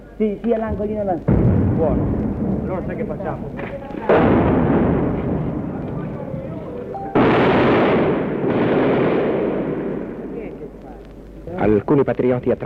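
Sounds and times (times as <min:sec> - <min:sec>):
speech: 0:00.2 - 0:04.6, 0:11.6 - 0:12.6
gunfire: 0:01.3 - 0:06.3, 0:07.2 - 0:10.8.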